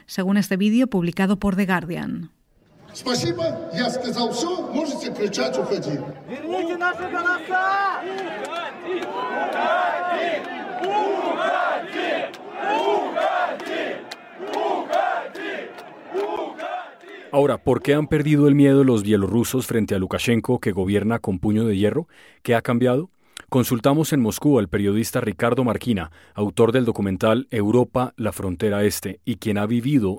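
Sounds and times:
speech: 0:00.1 - 0:02.4, 0:03.0 - 0:11.5, 0:17.3 - 0:30.1
factory workers shouting at a leader: 0:02.7 - 0:18.2.

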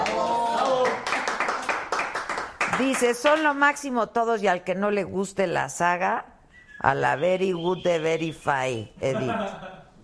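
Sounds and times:
hands clapping in applause: 0:00.0 - 0:03.6
speech: 0:02.8 - 0:09.8
laughter: 0:09.0 - 0:10.0.

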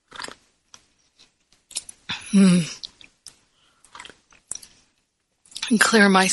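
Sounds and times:
person sipping tea: 0:00.0 - 0:00.4, 0:01.0 - 0:05.0
speech: 0:02.3 - 0:02.8, 0:05.7 - 0:06.3.

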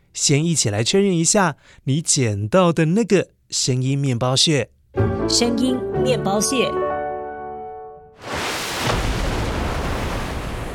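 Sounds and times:
speech: 0:00.2 - 0:06.9
tsunami ocean waves: 0:08.2 - 0:10.7.

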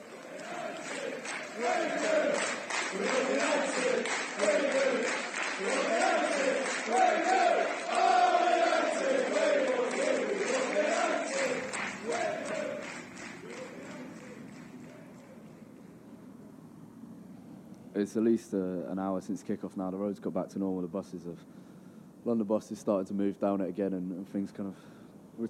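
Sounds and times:
drunk football fans shouting and chanting: 0:00.0 - 0:15.5
speech: 0:18.0 - 0:21.6, 0:22.2 - 0:25.4.

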